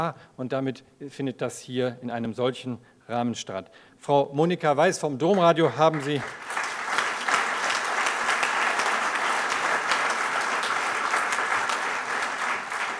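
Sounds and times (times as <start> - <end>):
speech: 0.0 - 6.6
audience applause at an evening event: 5.6 - 12.9.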